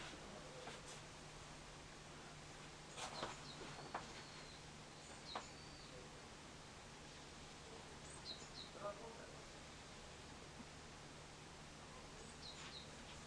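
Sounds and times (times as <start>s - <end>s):
steady hiss: 0.0s - 13.2s
thin high bird calls: 3.0s - 6.1s, 8.0s - 8.8s, 12.2s - 13.2s.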